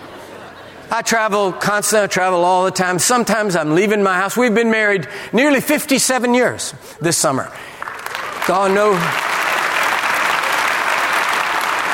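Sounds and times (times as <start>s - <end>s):
speech: 0.9s - 7.7s, 8.5s - 9.3s
audience applause: 7.8s - 11.9s.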